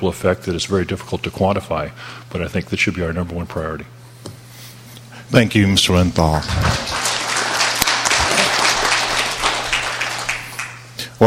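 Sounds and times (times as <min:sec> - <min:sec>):
speech: 0:00.0 - 0:04.0, 0:05.3 - 0:07.0
audience applause: 0:06.2 - 0:10.9.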